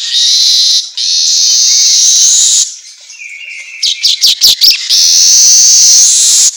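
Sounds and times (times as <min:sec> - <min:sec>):
Asian golden weaver song: 0:00.2 - 0:02.7, 0:04.5 - 0:06.5.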